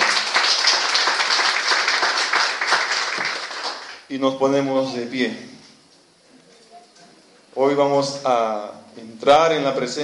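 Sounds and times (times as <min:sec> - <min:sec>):
audience applauding: 0:00.0 - 0:04.1
speech: 0:04.1 - 0:05.6, 0:07.6 - 0:10.0.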